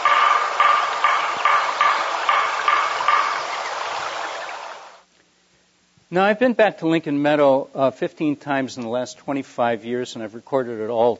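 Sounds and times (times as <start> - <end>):
woodpecker: 0.0 - 4.8
speech: 6.1 - 11.1.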